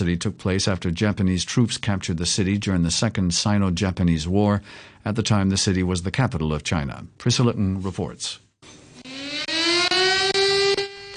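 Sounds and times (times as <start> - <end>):
speech: 0.0 - 8.8
sirens blaring during memorial silence: 9.0 - 11.1.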